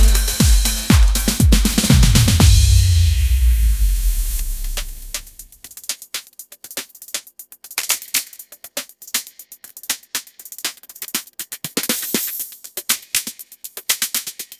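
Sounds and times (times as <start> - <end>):
upbeat groove ringtone: 0.0 - 3.5.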